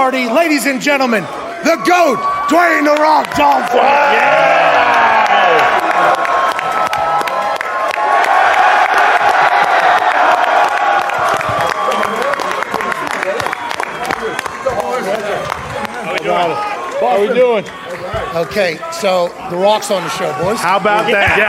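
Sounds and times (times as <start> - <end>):
speech: 0.0 - 4.9, 16.3 - 21.4
large live crowd cheering: 1.2 - 21.4
large crowd clapping: 2.7 - 18.0.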